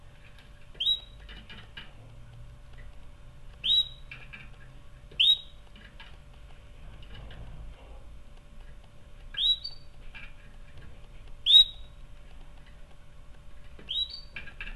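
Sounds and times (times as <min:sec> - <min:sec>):
canary chirping: 0:00.2 - 0:01.4, 0:03.6 - 0:05.8, 0:09.3 - 0:10.4, 0:11.4 - 0:12.0, 0:13.8 - 0:14.6.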